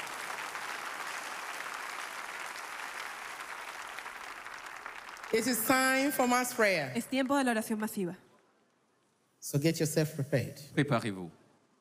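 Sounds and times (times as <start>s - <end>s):
audience clapping: 0.0s - 7.1s
speech: 5.3s - 8.2s, 9.5s - 11.4s.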